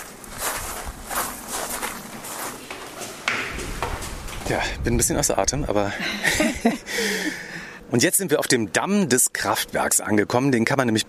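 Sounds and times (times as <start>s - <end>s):
footsteps crunching along an outdoor path toward the Jochenstein hydroelectric dam on the Danube: 0.0s - 4.5s
speech: 4.5s - 11.0s
laughter: 5.9s - 7.6s.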